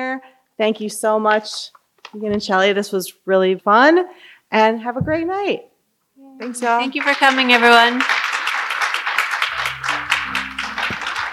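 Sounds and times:
speech: 0.0s - 8.2s
audience applause at the close of a live event: 6.9s - 11.3s.

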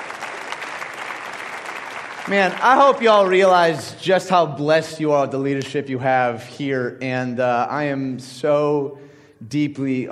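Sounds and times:
crowd applauding: 0.0s - 4.0s
speech: 2.3s - 10.0s.

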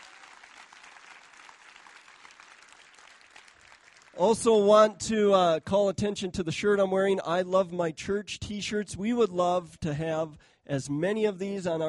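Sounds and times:
audience applause for veterans: 0.0s - 4.2s
speech: 4.2s - 11.8s.

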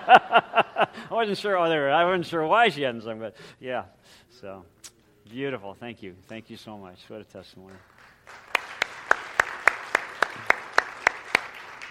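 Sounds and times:
laughter: 0.0s - 1.1s
speech: 0.1s - 0.4s, 1.1s - 8.4s
audience applauding: 7.7s - 11.8s.

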